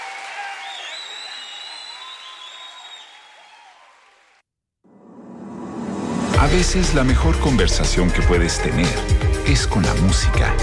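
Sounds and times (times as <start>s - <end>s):
crowd applauding: 0.0s - 4.4s
crowd whistles and cheers: 0.0s - 4.4s
speech: 6.4s - 10.6s.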